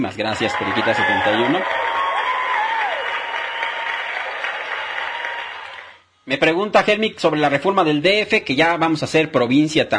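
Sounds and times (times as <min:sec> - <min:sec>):
speech: 0:00.0 - 0:01.8, 0:06.3 - 0:09.9
applause: 0:00.5 - 0:06.0.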